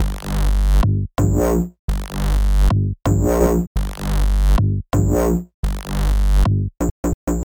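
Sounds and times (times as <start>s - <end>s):
bass: 0.0s - 7.4s.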